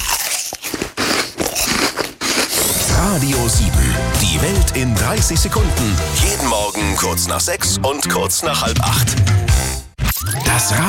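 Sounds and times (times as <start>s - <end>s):
loud smacking bites into an apple: 0.0s - 2.9s
speech: 3.1s - 9.7s, 10.5s - 10.8s.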